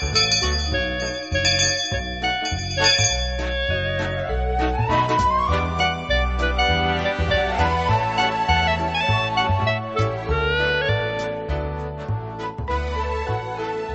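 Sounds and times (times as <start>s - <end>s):
chiming bell melody signalling start of class: 0.0s - 7.1s
pulsing low bass line: 0.0s - 13.5s.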